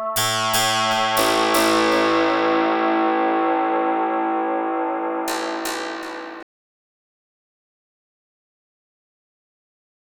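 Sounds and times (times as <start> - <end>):
chillout music: 0.2 - 6.4
metallic hit: 0.2 - 6.5.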